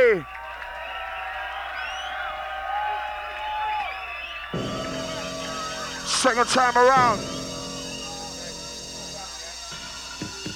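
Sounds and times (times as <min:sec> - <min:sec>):
speech: 0:00.0 - 0:00.4, 0:06.2 - 0:07.4
people whooping and shouting: 0:00.0 - 0:08.4
crowd cheering and applauding: 0:00.0 - 0:10.5
harsh burst of noise: 0:04.6 - 0:10.5.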